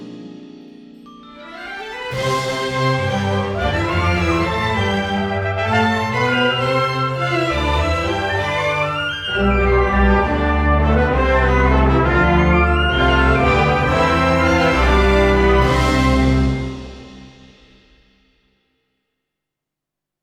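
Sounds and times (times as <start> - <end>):
trombone and violin concerto: 1.4 - 17.3.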